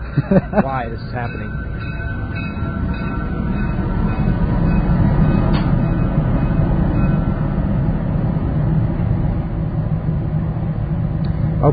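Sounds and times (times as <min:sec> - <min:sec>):
laughter: 0:00.0 - 0:01.5
train rumbling past: 0:00.0 - 0:11.7
speech: 0:00.2 - 0:02.0.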